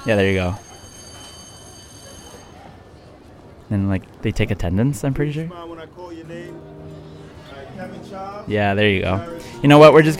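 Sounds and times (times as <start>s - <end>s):
speech: 0.0s - 0.6s, 3.7s - 6.8s, 7.8s - 10.1s
school bell ringing: 0.0s - 2.9s.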